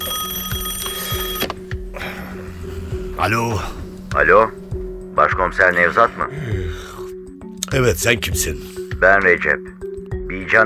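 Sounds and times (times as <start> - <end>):
telephone ringing at night: 0.0 - 2.0
speech: 3.2 - 4.6, 5.2 - 6.8, 7.7 - 10.6.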